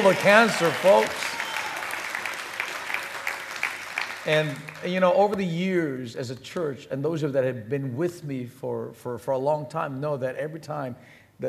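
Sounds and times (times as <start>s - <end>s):
speech: 0.0s - 1.3s, 4.2s - 11.4s
church congregation applauding for a healing: 0.0s - 5.4s.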